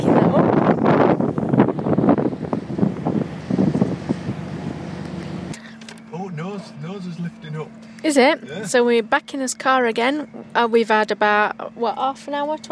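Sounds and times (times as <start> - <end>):
wind rushing from a fast-moving boat: 0.0 - 5.0
speech: 8.1 - 12.7.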